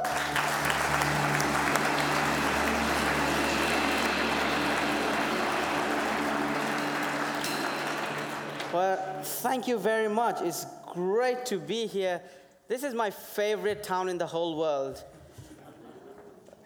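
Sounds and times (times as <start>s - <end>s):
audience applause welcoming a speaker: 0.0s - 9.9s
speech: 8.8s - 15.1s.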